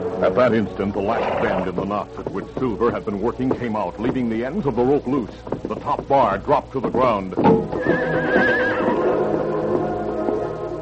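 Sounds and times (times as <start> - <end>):
speech: 0.2 - 8.6
stallion hoof clops: 0.2 - 10.7
stallion neighing wildly: 1.0 - 1.8, 7.8 - 9.3
stallion snorting breaths: 1.0 - 1.8.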